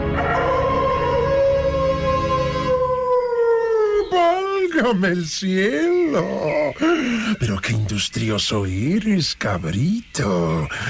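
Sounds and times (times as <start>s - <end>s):
wolf howling: 0.1s - 4.7s
speech: 4.8s - 10.8s.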